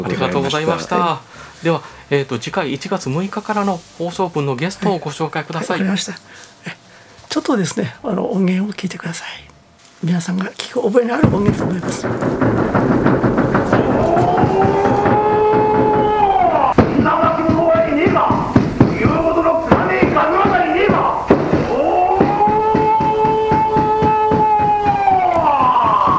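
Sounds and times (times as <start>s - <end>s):
speech: 0.0s - 13.5s
Namahage traditional ritual, Oga Peninsula: 11.2s - 26.1s.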